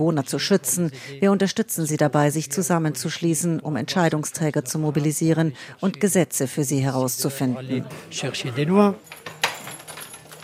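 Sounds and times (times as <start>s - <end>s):
speech: 0.0s - 9.4s
keys jangling in a lock as a room door is unlocked: 9.0s - 10.4s.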